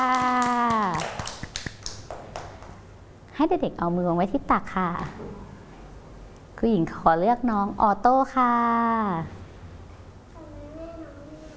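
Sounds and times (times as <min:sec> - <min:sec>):
children clapping: 0:00.0 - 0:02.8
speech: 0:03.4 - 0:05.5, 0:06.6 - 0:09.4.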